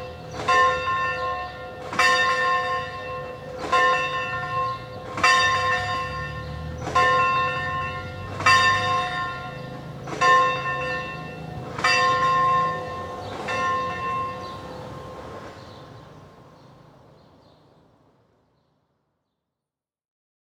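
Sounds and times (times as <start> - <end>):
parish church bells ringing: 0.0 - 15.8.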